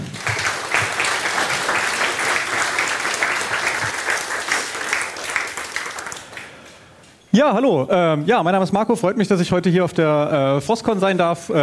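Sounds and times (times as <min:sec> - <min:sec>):
audience applause: 0:00.0 - 0:07.1
speech: 0:07.4 - 0:11.6.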